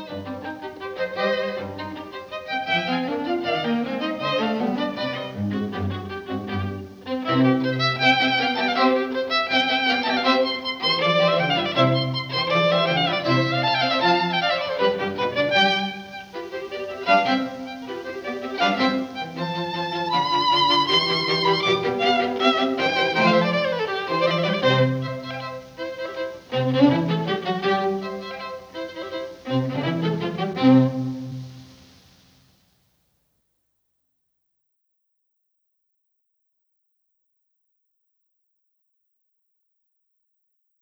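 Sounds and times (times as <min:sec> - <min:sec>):
string quartet: 0:00.0 - 0:32.1.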